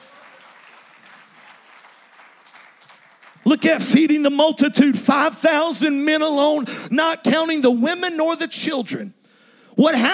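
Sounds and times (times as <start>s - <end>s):
audience hand clapping: 0.0s - 4.2s
speech: 3.4s - 9.2s, 9.8s - 10.1s.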